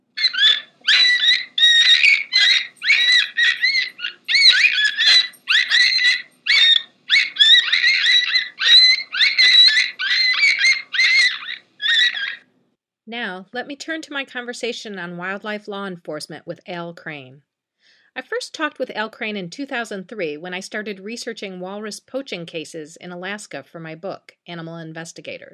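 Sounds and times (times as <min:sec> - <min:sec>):
beluga whale chirping whistles and squeaky trills: 0:00.2 - 0:12.4
speech: 0:13.5 - 0:17.5, 0:18.2 - 0:25.5.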